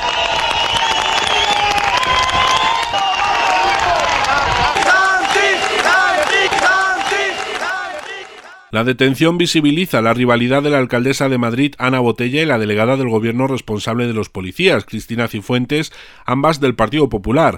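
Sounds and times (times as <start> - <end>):
colleagues applauding: 0.0 - 8.7
speech: 8.7 - 17.5.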